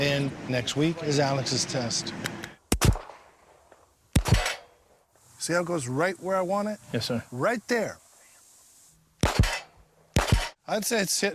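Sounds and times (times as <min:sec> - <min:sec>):
speech: 0:00.0 - 0:02.3, 0:05.5 - 0:08.0, 0:10.7 - 0:11.3
pistol shots during police firearms qualification: 0:02.7 - 0:04.8, 0:09.2 - 0:10.6.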